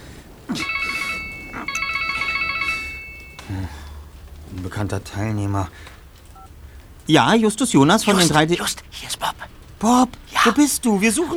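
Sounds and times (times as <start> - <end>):
mobile phone ringing: 0.3 - 5.4, 6.3 - 6.6
speech: 4.6 - 6.0, 7.1 - 9.2, 9.8 - 11.3.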